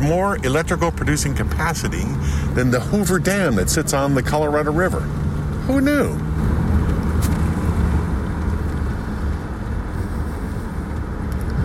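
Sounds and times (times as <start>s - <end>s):
speech: 0.0s - 6.3s
car engine and road rumble: 0.0s - 11.6s.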